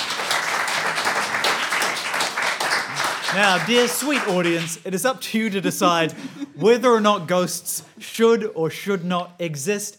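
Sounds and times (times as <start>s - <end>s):
audience applause: 0.0s - 4.8s
speech: 3.3s - 9.9s.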